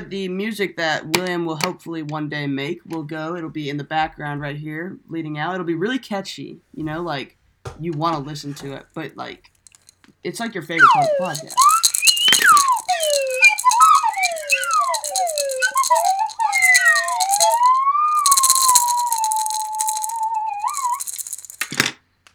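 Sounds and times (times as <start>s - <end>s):
speech: 0.0s - 9.5s, 10.2s - 11.7s
maraca: 9.7s - 10.0s, 10.8s - 21.8s
slide whistle: 10.8s - 21.6s.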